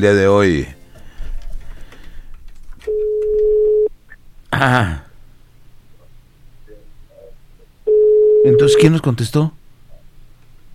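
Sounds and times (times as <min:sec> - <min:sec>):
speech: 0:00.0 - 0:00.8, 0:04.6 - 0:05.0, 0:08.4 - 0:09.6
low rumbling noise: 0:00.0 - 0:10.7
telephone ring tone on a telephone line while redialing: 0:02.9 - 0:03.9, 0:07.9 - 0:08.8.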